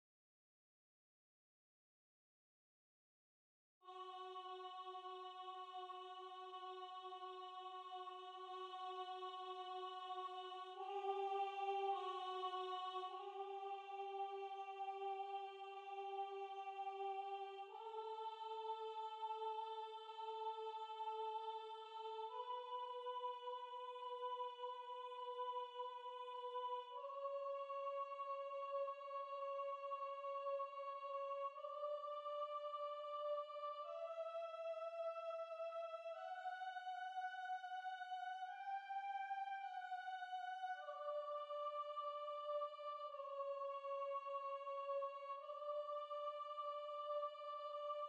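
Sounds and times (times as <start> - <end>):
soprano singing: 3.9 - 48.0.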